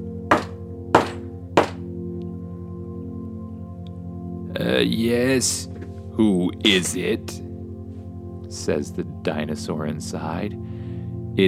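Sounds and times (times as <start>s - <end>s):
knocking on a door: 0.3s - 1.8s
speech: 4.6s - 7.5s, 8.5s - 10.7s.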